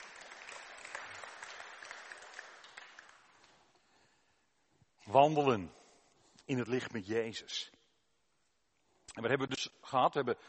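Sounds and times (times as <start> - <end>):
audience applause: 0.0 - 3.4
speech: 5.1 - 5.8, 6.5 - 7.8, 9.2 - 10.4.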